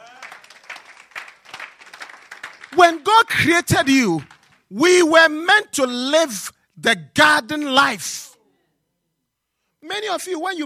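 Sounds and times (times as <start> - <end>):
congregation clapping during a sermon: 0.0 - 5.8, 7.4 - 8.0
speech: 2.7 - 8.3, 9.8 - 10.6.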